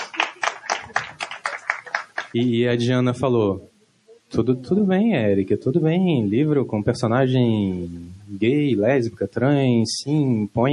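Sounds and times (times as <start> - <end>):
audience clapping: 0.0 - 2.4
speech: 2.3 - 3.7, 4.3 - 10.7.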